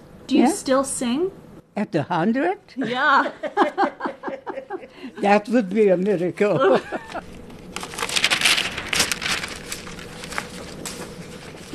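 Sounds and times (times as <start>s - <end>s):
speech: 0.3s - 4.0s, 5.0s - 7.0s
laughter: 2.8s - 5.3s, 6.5s - 7.3s
flipping through paper farewell cards: 7.1s - 11.7s.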